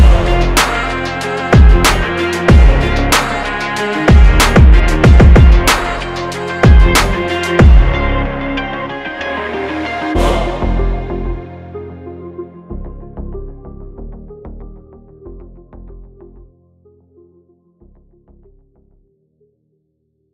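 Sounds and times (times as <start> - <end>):
hard motivational rock-inspired rap beat: 0.0 - 8.0.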